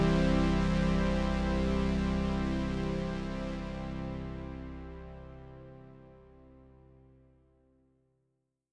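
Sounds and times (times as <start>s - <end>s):
JupiterX medium portamento glide: 0.0s - 5.9s.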